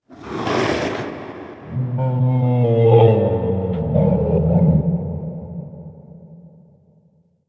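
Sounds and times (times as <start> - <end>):
growling: 1.7 - 5.9.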